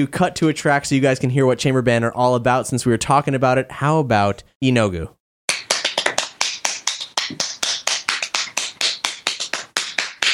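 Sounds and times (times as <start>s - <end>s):
speech: 0.0s - 5.2s
hand clapping in a demo recording: 5.5s - 10.3s.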